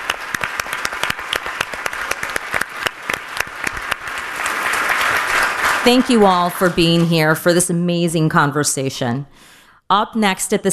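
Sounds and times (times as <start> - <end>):
audience applause: 0.0 - 7.2
speech: 5.8 - 10.7.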